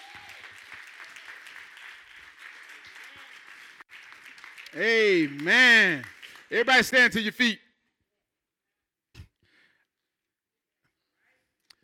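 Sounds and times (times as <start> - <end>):
audience hand clapping: 0.0 - 7.5
speech: 4.7 - 7.6.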